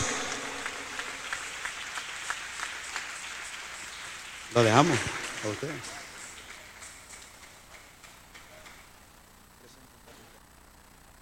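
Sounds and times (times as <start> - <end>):
audience applause: 0.0 - 8.9
speech: 4.5 - 6.0.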